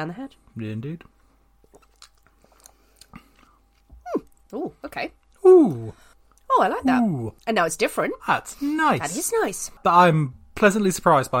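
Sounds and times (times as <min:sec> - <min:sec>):
speech: 0:00.0 - 0:01.2, 0:04.5 - 0:11.3
chewing and biting into star-shaped food: 0:01.6 - 0:04.6.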